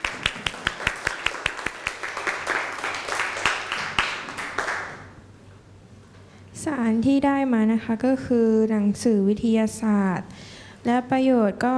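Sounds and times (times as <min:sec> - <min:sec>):
audience applause: 0:00.0 - 0:05.1
speech: 0:06.6 - 0:11.7.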